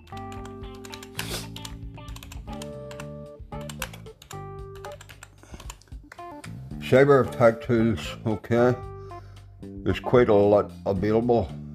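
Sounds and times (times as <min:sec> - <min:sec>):
web search typed on a computer keyboard: 0:00.0 - 0:06.4
speech: 0:06.9 - 0:08.9, 0:09.8 - 0:11.6.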